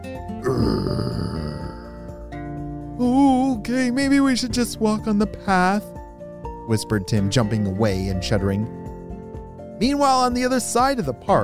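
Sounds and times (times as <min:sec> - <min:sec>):
speech: 0:00.4 - 0:01.2, 0:03.0 - 0:05.9, 0:06.7 - 0:08.8, 0:09.8 - 0:11.4
menacing growl: 0:00.4 - 0:02.1.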